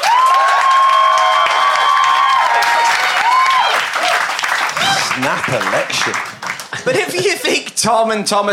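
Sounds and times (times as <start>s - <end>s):
cheering cries: 0.0s - 6.0s
crowd applauding: 0.0s - 7.7s
laughter: 4.8s - 7.8s
speech: 5.2s - 8.5s.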